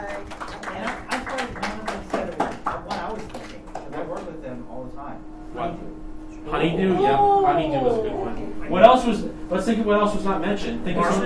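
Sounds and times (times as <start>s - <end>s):
round of applause: 0.0s - 4.3s
speech: 6.6s - 11.2s.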